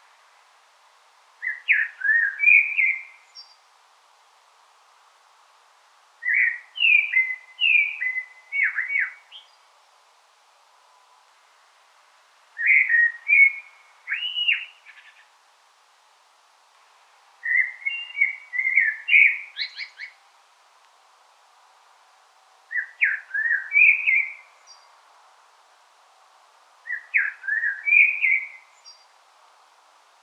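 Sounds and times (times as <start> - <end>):
Common blackbird singing: 1.4 - 3.7, 6.2 - 9.7, 12.6 - 15.4, 17.4 - 20.2, 22.7 - 25.0, 26.8 - 29.2.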